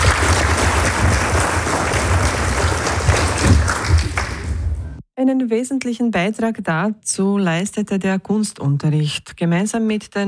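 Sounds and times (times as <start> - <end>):
audience clapping: 0.0 - 5.0
speech: 5.2 - 10.2.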